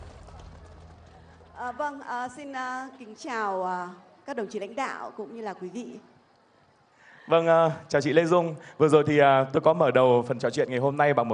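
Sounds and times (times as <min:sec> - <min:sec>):
audience applause: 0:00.0 - 0:01.8
speech: 0:01.6 - 0:06.1, 0:07.3 - 0:11.3.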